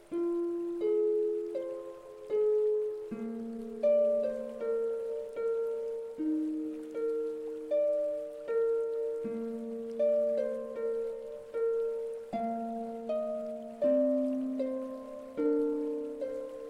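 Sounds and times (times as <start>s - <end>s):
harmonics fourteen to twenty-eight: 0.0s - 16.6s.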